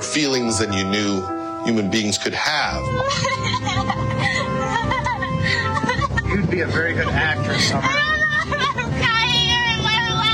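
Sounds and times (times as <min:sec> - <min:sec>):
speech: 0:00.2 - 0:08.6
teenage girl crying in a home video: 0:02.9 - 0:06.2, 0:07.5 - 0:09.6
laughter: 0:02.9 - 0:09.1.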